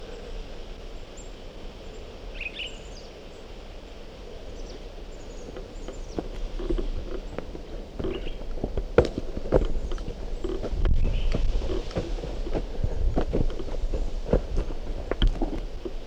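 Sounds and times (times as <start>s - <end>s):
bird singing: 4.4s - 16.0s.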